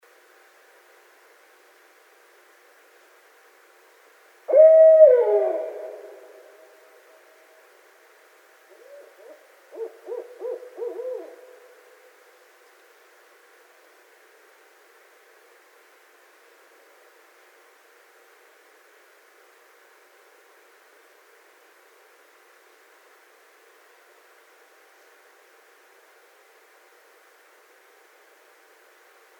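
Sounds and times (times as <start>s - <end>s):
barred owl excited hoots, cackles and wailing notes: 4.5s - 6.8s, 8.7s - 11.9s.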